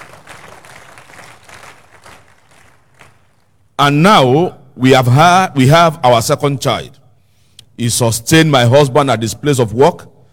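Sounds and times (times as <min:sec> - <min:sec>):
audience clapping: 0:00.0 - 0:03.7
speech: 0:03.8 - 0:07.0, 0:07.8 - 0:10.1.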